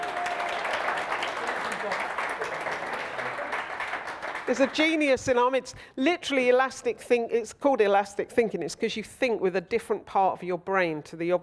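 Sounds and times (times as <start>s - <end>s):
audience applause: 0.0s - 5.0s
speech: 4.5s - 11.4s.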